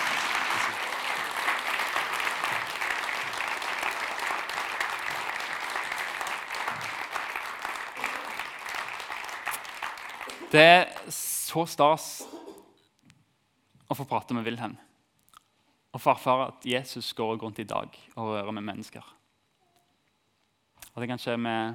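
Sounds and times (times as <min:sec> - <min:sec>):
audience applause: 0:00.0 - 0:11.2
speech: 0:10.5 - 0:12.3, 0:14.0 - 0:14.8, 0:16.0 - 0:19.2, 0:21.0 - 0:21.7.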